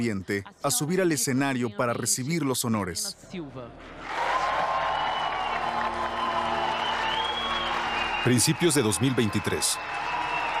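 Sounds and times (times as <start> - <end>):
speech: 0.0 - 4.2, 8.2 - 10.2
warm applause: 4.0 - 10.5.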